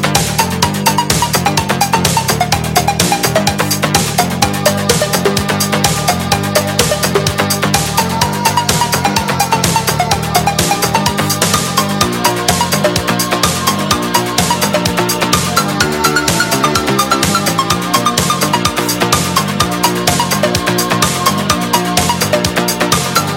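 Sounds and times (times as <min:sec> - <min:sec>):
electronica ringtone: 0:00.2 - 0:23.3.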